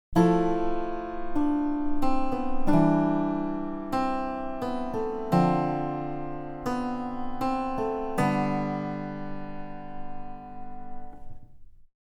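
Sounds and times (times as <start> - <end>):
harpsichord: 0.2 - 11.3.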